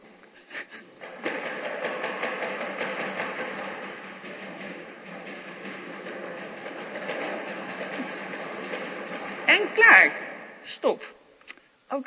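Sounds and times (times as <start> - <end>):
many drums and pot lids being banged: 1.0 - 10.6
speech: 9.9 - 11.2.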